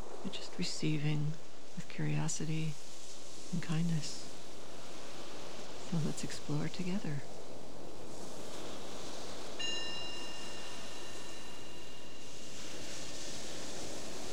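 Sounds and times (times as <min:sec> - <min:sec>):
speech: 0:00.2 - 0:02.8, 0:03.5 - 0:04.3, 0:05.9 - 0:07.3
meditation bell ringing: 0:09.6 - 0:12.3.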